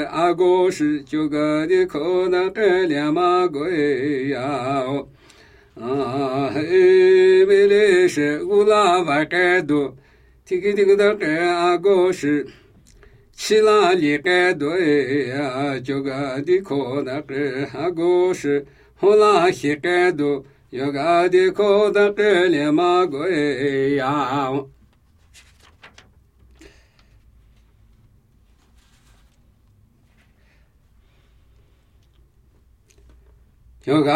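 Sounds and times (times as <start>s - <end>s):
Namuyi Tibetan ritual chanting: 0.0s - 12.6s, 13.4s - 24.8s, 33.8s - 34.1s.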